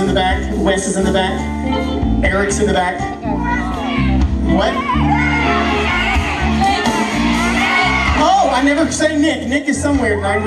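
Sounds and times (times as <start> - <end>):
speech: 0.2 - 3.6, 4.6 - 5.7, 8.6 - 10.4
crowd applauding: 4.9 - 9.5.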